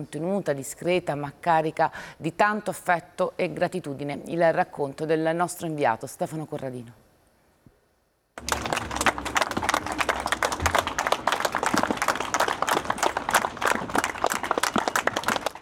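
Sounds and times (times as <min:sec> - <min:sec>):
speech: 0:00.0 - 0:07.0
long applause from villagers at a funeral in Pavana: 0:08.4 - 0:15.6.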